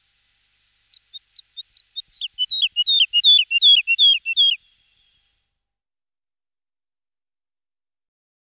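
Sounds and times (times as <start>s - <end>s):
woodlark song in a local recreation area: 0.0s - 5.4s.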